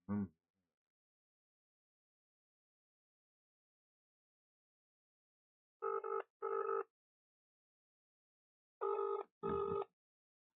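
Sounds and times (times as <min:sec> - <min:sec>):
telephone ringing on a call to Tucker Solicitors: 0:05.8 - 0:06.8, 0:08.8 - 0:09.9.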